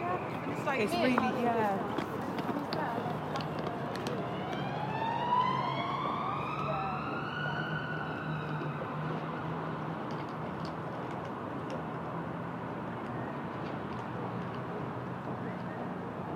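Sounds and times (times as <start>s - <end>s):
city soundscape in Bristol: 0.0s - 16.3s.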